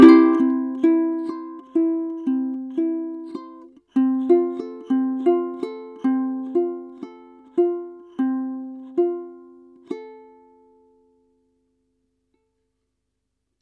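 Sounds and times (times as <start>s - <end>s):
guitar G string: 0.0s - 10.2s.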